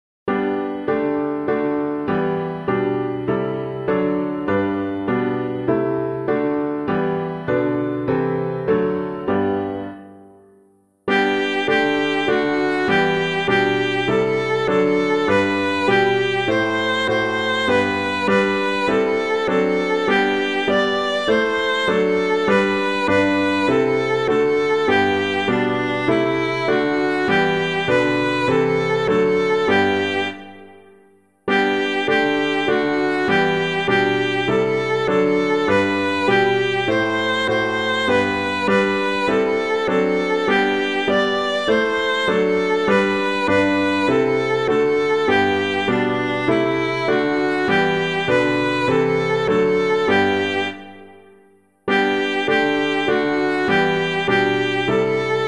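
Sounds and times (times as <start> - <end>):
piano: 0.3 - 55.4.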